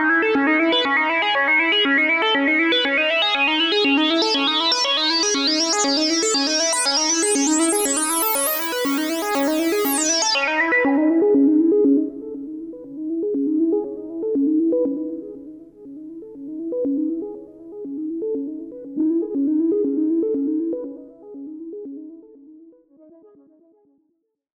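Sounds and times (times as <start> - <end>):
SH-2 synthesizer arpeggio: 0.3 - 21.3.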